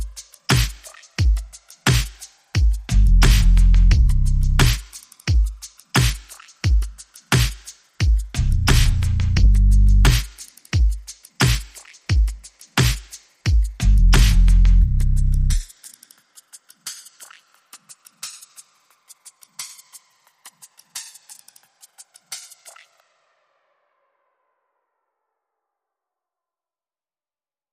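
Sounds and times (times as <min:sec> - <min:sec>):
drums: 0:00.0 - 0:23.1
bass: 0:02.9 - 0:04.8, 0:08.4 - 0:10.2, 0:13.8 - 0:15.6.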